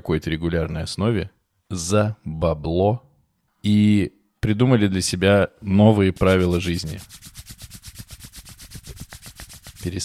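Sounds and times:
speech: 0:00.0 - 0:07.4, 0:09.8 - 0:10.0
hands rubbing together: 0:05.9 - 0:10.0.

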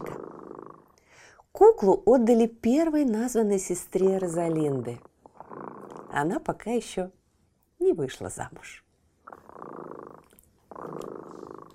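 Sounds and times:
cat purring: 0:00.0 - 0:01.0, 0:03.6 - 0:06.9, 0:09.2 - 0:11.7
speech: 0:01.6 - 0:05.1, 0:06.1 - 0:07.2, 0:07.8 - 0:08.8.

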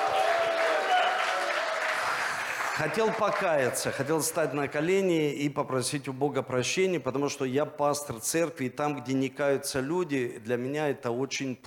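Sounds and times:
whoops and shouts: 0:00.0 - 0:01.8
church crowd clapping: 0:00.0 - 0:04.5
speech: 0:02.8 - 0:11.6.

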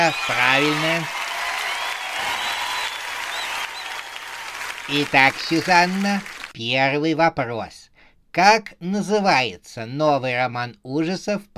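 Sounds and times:
speech: 0:00.0 - 0:01.2, 0:04.9 - 0:11.5
studio audience applause: 0:00.0 - 0:06.6.

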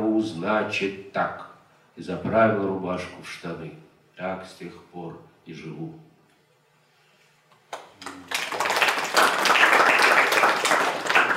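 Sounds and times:
speech: 0:00.2 - 0:06.1
audience applause: 0:08.0 - 0:11.3.

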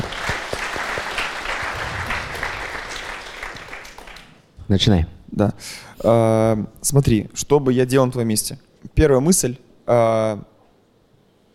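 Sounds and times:
audience clapping: 0:00.0 - 0:04.5
speech: 0:04.7 - 0:10.5.

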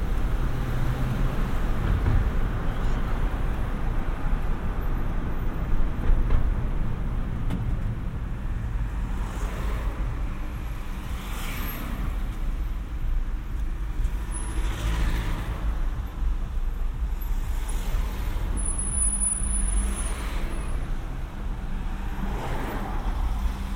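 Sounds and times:
car engine and road rumble through city streets: 0:00.0 - 0:23.7.

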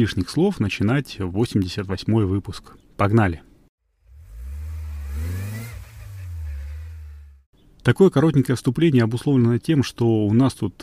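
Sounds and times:
speech: 0:00.0 - 0:03.5, 0:07.9 - 0:10.8
car engine running and revving: 0:04.0 - 0:07.5.

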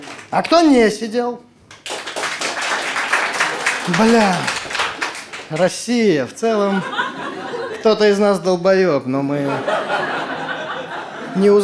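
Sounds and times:
crowd applauding: 0:00.0 - 0:00.4, 0:01.8 - 0:06.0
speech: 0:00.3 - 0:01.5, 0:03.9 - 0:04.6, 0:05.5 - 0:07.0, 0:07.8 - 0:09.7, 0:11.4 - 0:11.6
laughter: 0:03.2 - 0:05.1, 0:06.3 - 0:08.2, 0:09.4 - 0:11.6.

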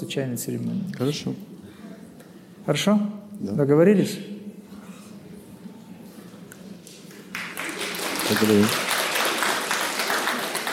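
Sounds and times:
speech: 0:00.0 - 0:01.5, 0:02.6 - 0:04.4, 0:08.4 - 0:08.9
audience clapping: 0:06.5 - 0:10.7.

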